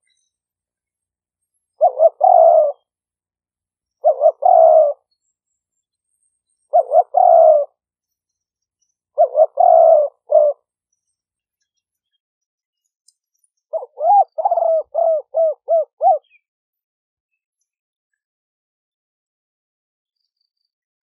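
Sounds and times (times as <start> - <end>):
spotted dove cooing: 1.8 - 2.9, 4.0 - 5.1, 6.7 - 7.8, 9.2 - 10.6, 13.7 - 16.4.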